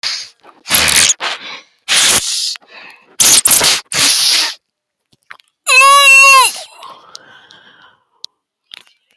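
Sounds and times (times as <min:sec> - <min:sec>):
sniffs: 0:00.0 - 0:04.6.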